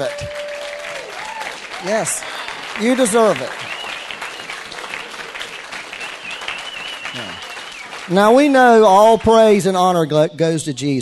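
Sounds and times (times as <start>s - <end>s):
speech: 0.0s - 0.4s, 1.8s - 3.8s, 8.1s - 11.0s
audience applauding themselves: 0.0s - 10.0s
whistle-like tone: 3.6s - 4.8s, 6.0s - 7.9s.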